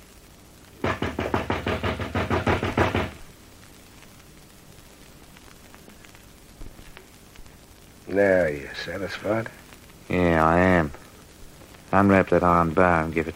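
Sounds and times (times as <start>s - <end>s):
knocking on a door: 0.8s - 3.2s
speech: 8.2s - 11.0s, 11.9s - 13.3s.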